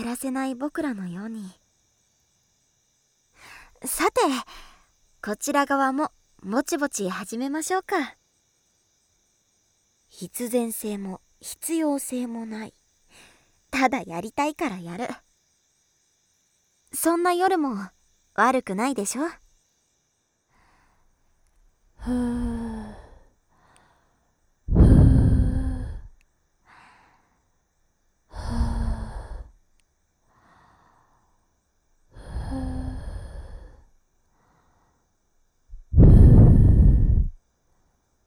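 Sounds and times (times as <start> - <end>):
night wind: 0.0 - 38.2
blowing into the right ear ASMR: 35.9 - 37.4.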